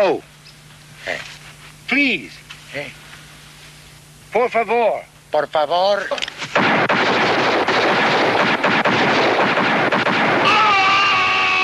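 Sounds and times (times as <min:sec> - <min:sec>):
speech: 0:00.0 - 0:00.3, 0:01.0 - 0:01.3, 0:01.9 - 0:03.0, 0:04.3 - 0:06.8
revolver gunfire: 0:06.4 - 0:11.5.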